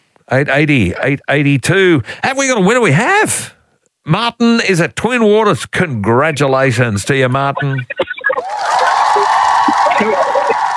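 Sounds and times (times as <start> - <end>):
speech: 0.3 - 8.8
applause: 8.4 - 10.7
crowd cheering and whooping: 8.4 - 10.7.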